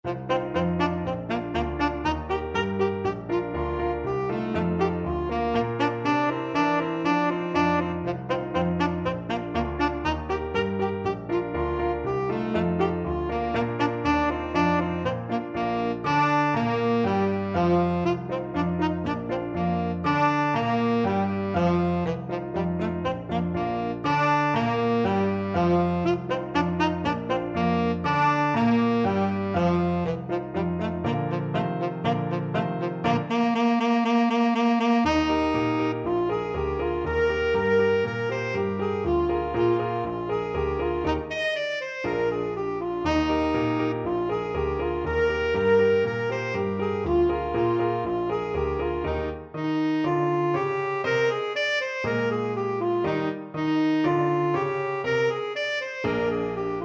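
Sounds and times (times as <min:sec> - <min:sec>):
tenor saxophone: 0:00.0 - 0:56.8.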